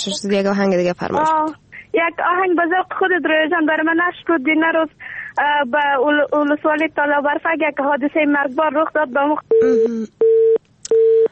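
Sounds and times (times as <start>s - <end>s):
speech: 0.0s - 10.2s
telephone busy tone after a call cuts off: 9.5s - 11.3s.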